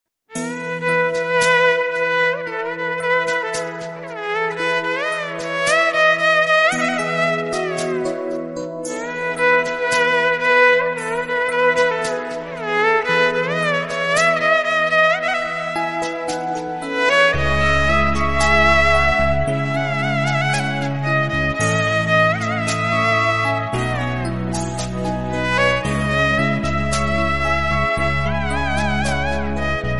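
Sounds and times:
violin: 0:00.4 - 0:29.9.

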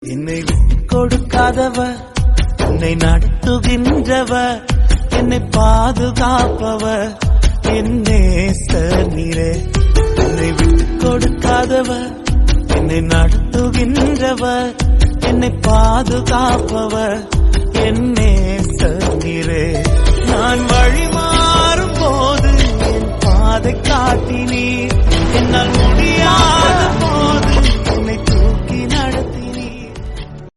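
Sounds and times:
Jesus devotional music: 0:00.0 - 0:30.5.

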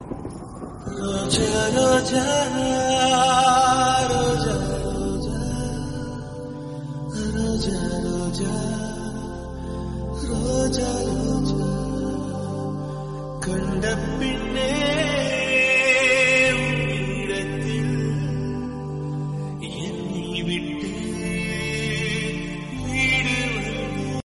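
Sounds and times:
Telugu song: 0:00.0 - 0:24.2.

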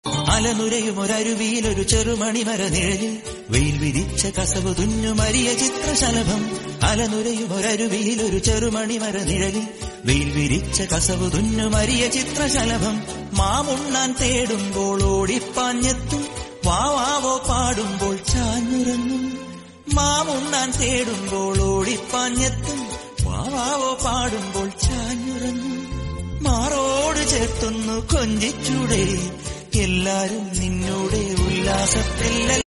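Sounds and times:
Malayalam song: 0:00.0 - 0:32.6.

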